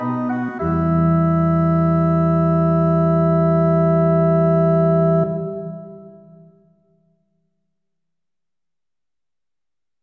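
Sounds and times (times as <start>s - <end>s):
organ voluntary in E minor: 0.0s - 6.2s.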